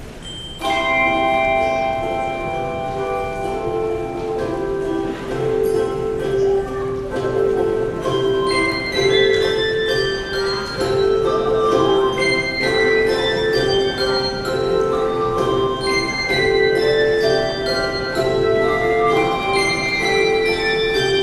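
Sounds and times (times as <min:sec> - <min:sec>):
handbells: 0:00.0 - 0:21.2.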